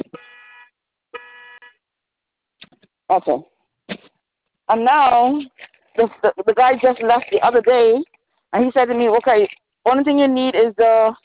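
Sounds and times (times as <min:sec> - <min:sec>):
car alarm blasts: 0:00.0 - 0:01.8
speech: 0:03.1 - 0:03.5, 0:04.7 - 0:11.2.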